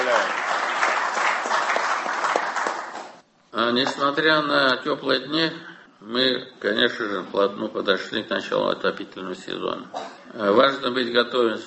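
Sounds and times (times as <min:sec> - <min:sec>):
applause at an official ceremony honouring forestry workers: 0:00.0 - 0:03.2
speech: 0:03.7 - 0:11.6.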